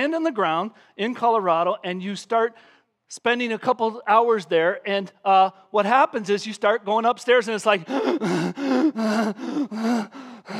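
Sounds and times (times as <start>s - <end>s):
speech: 0.0s - 10.5s
person imitating gasping for breath from altitude sickness: 7.8s - 10.5s.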